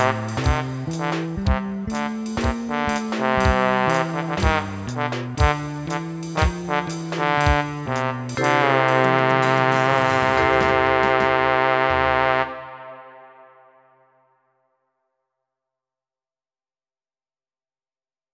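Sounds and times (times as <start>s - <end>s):
MIDI blues music: 0.0s - 12.4s.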